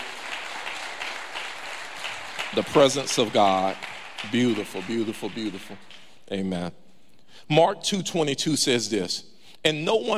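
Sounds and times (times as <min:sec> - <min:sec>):
audience applause: 0:00.0 - 0:06.0
speech: 0:02.5 - 0:06.8, 0:07.4 - 0:10.1.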